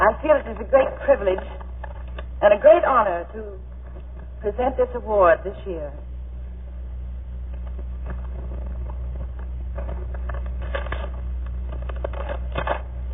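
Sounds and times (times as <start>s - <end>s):
low steady hum: 0.0s - 13.1s
speech: 0.3s - 1.6s, 2.4s - 3.7s, 4.4s - 6.1s
paper envelope being opened at the Academy Awards for the Thalberg Award: 8.1s - 12.9s.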